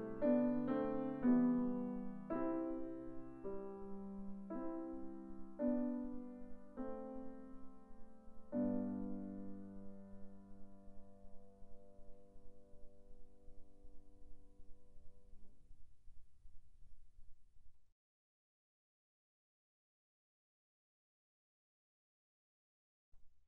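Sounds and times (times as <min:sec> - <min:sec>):
piano piece: 0:00.0 - 0:14.6.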